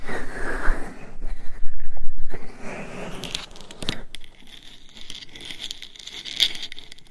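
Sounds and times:
scratching and rubbing on a binaural microphone: 0.0 - 6.7.

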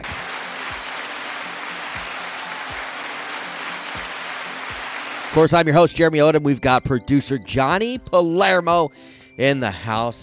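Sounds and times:
applause: 0.0 - 5.6
speech: 5.3 - 10.2.

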